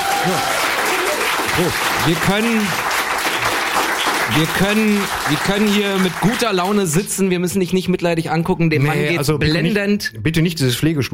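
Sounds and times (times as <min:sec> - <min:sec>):
short voiced calls or cheers: 0:00.0 - 0:07.1
crowd applause: 0:00.0 - 0:07.2
speech: 0:00.2 - 0:00.6, 0:01.6 - 0:02.9, 0:04.3 - 0:11.1.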